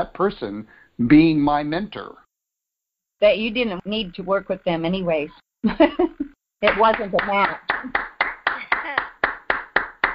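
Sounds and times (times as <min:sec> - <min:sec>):
speech: 0:00.0 - 0:02.2, 0:03.2 - 0:08.1
hand claps during a group exercise: 0:06.6 - 0:10.1.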